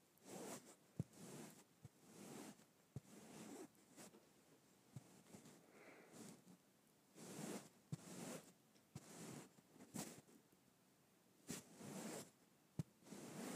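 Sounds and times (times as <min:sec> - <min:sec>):
faint steady hiss: 0:00.0 - 0:13.5
fabric stroking: 0:00.2 - 0:04.2, 0:07.1 - 0:10.3, 0:11.5 - 0:13.5.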